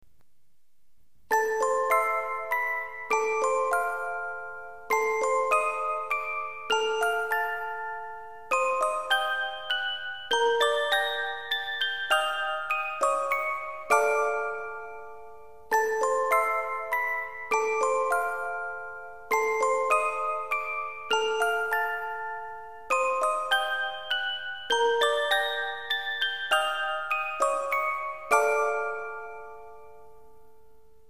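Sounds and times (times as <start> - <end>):
cursed music box background music: 1.3 - 30.7.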